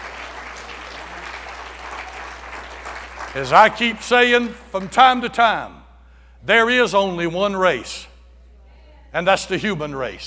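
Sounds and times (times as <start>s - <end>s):
audience applause: 0.0s - 4.0s
speech: 3.3s - 5.8s, 6.4s - 8.1s, 9.1s - 10.2s.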